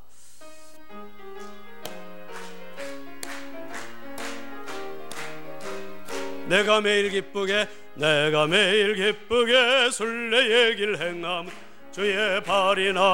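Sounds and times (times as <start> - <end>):
audience clapping along: 1.3 - 8.8, 10.4 - 13.1
speech: 6.5 - 13.1.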